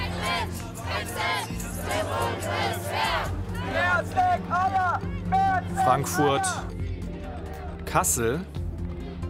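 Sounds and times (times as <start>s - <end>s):
steady roar of crowd noise: 0.0s - 6.7s
large protest crowd chanting: 0.0s - 7.8s
speech: 5.9s - 6.8s, 7.9s - 8.6s.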